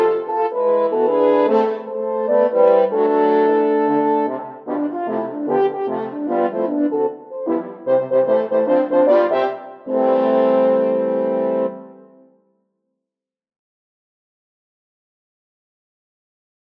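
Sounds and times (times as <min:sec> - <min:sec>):
horn quartet playing: 0:00.0 - 0:12.2.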